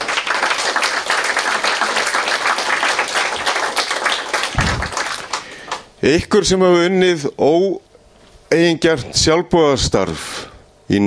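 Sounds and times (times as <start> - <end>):
audience applause for the staff at an organisation's meeting: 0.0 - 6.0
dull low thumps: 4.5 - 5.0
speech: 6.0 - 7.8, 8.5 - 10.3, 10.9 - 11.0.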